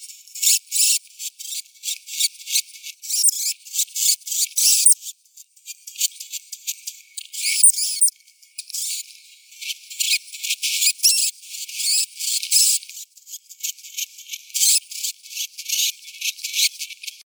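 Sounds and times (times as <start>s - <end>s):
common hamster Cricetus cricetus: 0.4s - 5.1s, 7.2s - 9.0s, 10.0s - 17.2s.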